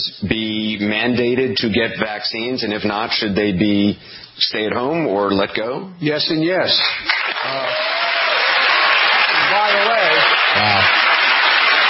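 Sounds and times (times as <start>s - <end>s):
speech: 0.0s - 7.8s
crowd cheering: 7.1s - 11.8s.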